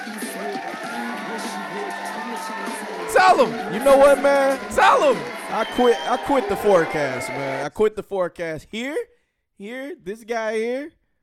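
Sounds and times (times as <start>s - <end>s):
applause: 0.0s - 7.5s
cheering: 0.0s - 7.7s
speech: 3.2s - 11.0s.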